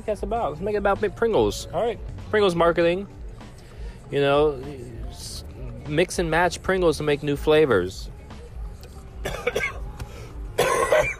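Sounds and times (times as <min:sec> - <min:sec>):
speech: 0:00.0 - 0:03.2, 0:04.1 - 0:08.2
person coughing from honey roasted peanuts stuck in the throat: 0:09.2 - 0:09.9, 0:10.5 - 0:11.1
throat clearing: 0:09.2 - 0:09.9, 0:10.6 - 0:11.1.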